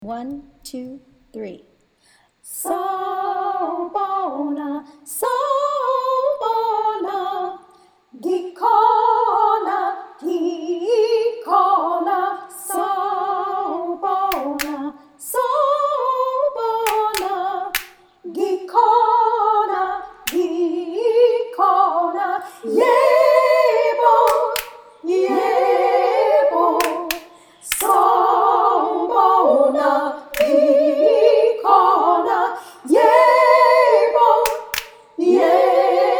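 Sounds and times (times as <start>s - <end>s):
choir singing all parts: 2.6s - 7.6s, 8.3s - 36.1s.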